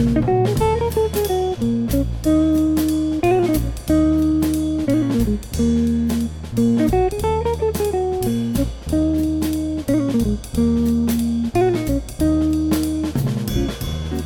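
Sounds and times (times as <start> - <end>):
bass: 0.0 - 14.2
drums: 0.0 - 14.2
guitar: 0.0 - 14.2.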